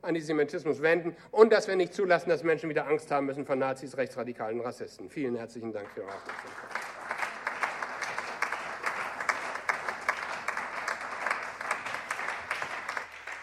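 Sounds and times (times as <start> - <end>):
speech: 0.0 - 6.7
applause in parliament after a speech: 5.8 - 13.4.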